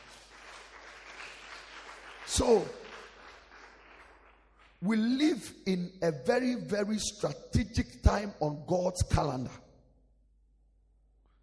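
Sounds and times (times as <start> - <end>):
audience clapping hands: 0.0 - 5.8
speech: 2.4 - 2.8, 4.8 - 9.6.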